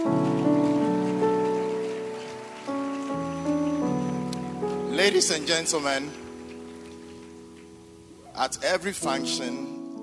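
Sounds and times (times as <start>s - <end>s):
audience clapping: 0.0s - 8.1s
speech: 5.0s - 6.2s, 8.4s - 9.8s.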